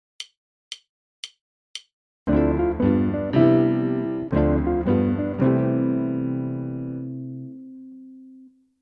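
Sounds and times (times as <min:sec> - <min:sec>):
guitar: 0:02.3 - 0:08.5.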